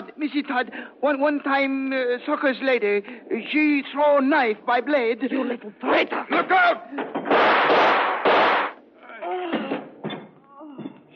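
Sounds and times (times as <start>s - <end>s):
speech: 0.2s - 7.2s
gunshots in a radio drama aboard a steamship: 7.3s - 8.8s.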